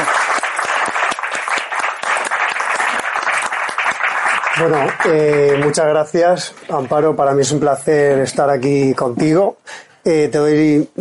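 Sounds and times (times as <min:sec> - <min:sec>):
audience applause: 0:00.0 - 0:07.1
speech: 0:04.6 - 0:10.9.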